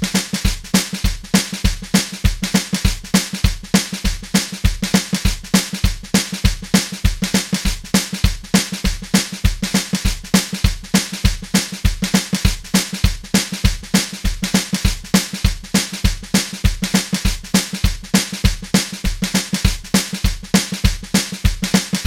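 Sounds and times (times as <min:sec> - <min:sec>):
drums playing train shuffle beat: 0:00.0 - 0:22.0.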